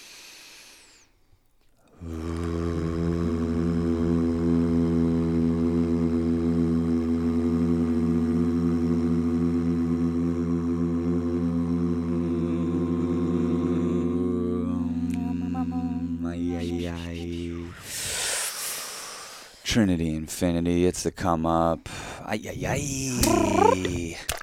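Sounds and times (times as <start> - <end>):
breathy noise: 1.8 - 3.0, 23.2 - 23.9
several voices humming and buzzing together: 1.9 - 17.7, 23.2 - 23.8
speech: 19.7 - 24.3.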